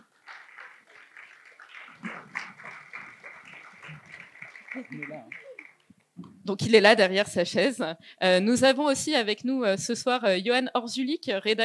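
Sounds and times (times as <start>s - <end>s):
audience applauding: 0.0s - 5.9s
speech: 4.8s - 5.4s, 6.2s - 11.6s.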